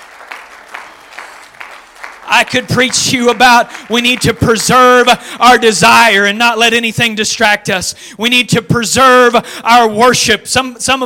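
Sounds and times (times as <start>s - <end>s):
audience clapping hands: 0.0s - 6.2s
speech: 2.3s - 11.0s.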